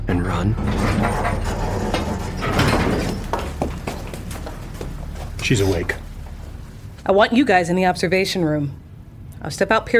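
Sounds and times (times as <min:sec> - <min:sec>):
speech: 0:00.2 - 0:02.0, 0:05.4 - 0:06.0, 0:07.1 - 0:08.8, 0:09.4 - 0:09.9
elevator mechanism rumbling: 0:00.5 - 0:08.9
metal clanking and rattling: 0:00.6 - 0:07.0
sharp clicks and knocks: 0:00.7 - 0:05.4.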